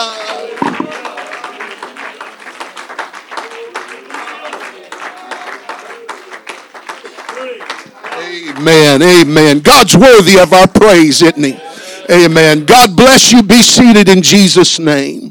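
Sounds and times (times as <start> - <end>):
audience clapping hands: 0.0 - 11.5
speech: 8.6 - 15.2.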